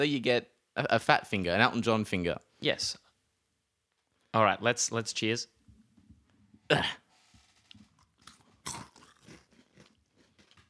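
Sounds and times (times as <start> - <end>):
speech: 0.0 - 3.0, 4.3 - 5.6, 6.7 - 7.0
person chewing a crunchy malt biscuit: 7.3 - 10.6.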